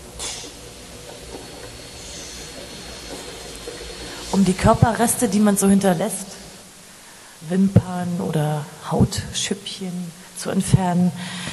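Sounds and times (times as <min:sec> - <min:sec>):
mini vacuum cleaner running: 0:00.0 - 0:06.7
speech: 0:04.4 - 0:06.3, 0:07.5 - 0:11.5.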